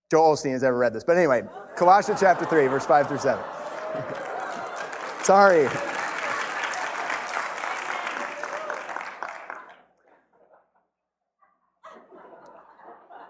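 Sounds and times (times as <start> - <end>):
speech: 0.1 - 4.3, 5.2 - 5.9
laughter: 1.3 - 10.9, 11.8 - 13.2
audience applause: 1.8 - 9.9.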